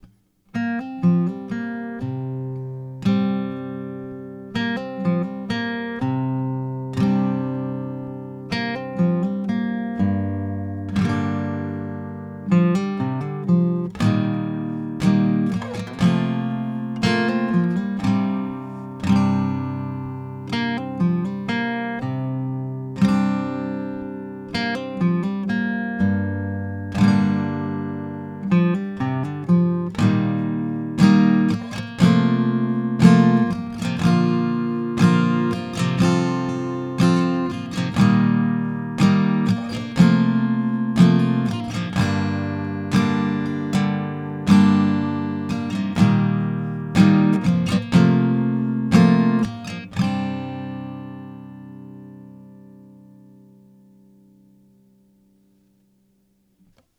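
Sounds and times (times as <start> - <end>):
guitar: 0.0 - 56.9.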